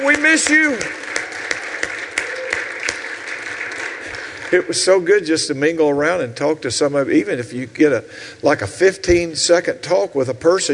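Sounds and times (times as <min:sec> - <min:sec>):
speech: 0:00.0 - 0:01.1, 0:04.5 - 0:10.7
church congregation applauding in welcome: 0:00.0 - 0:05.2.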